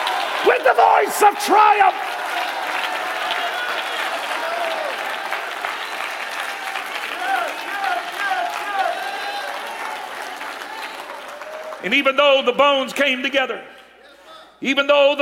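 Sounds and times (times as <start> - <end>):
audience clapping hands: 0.0 - 12.5
speech: 0.4 - 2.2, 11.8 - 13.7, 14.6 - 15.2.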